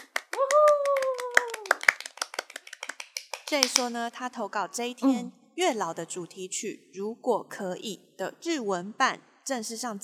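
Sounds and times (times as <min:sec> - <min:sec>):
people clapping: 0:00.0 - 0:04.0
speech: 0:03.5 - 0:10.0.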